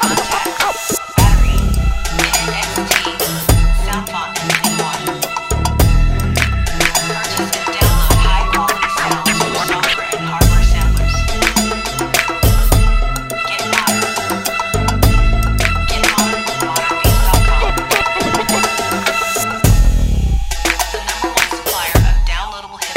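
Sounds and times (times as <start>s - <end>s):
ethnic percussion loops: 0.0s - 22.9s.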